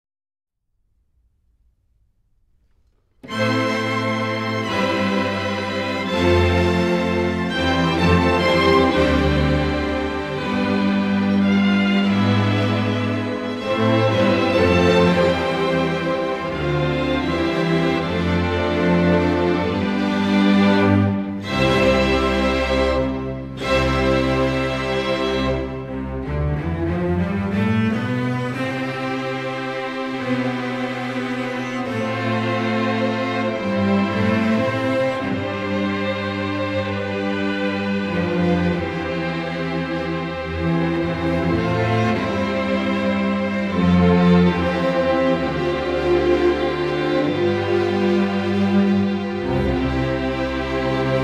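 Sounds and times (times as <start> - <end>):
string serenade: 2.5 - 51.2.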